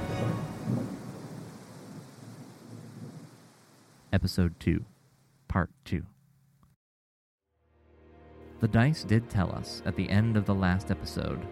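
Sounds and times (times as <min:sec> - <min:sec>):
thunder crack during storm: 0:00.0 - 0:03.4
speech: 0:04.2 - 0:04.9, 0:05.5 - 0:06.2, 0:08.6 - 0:11.5.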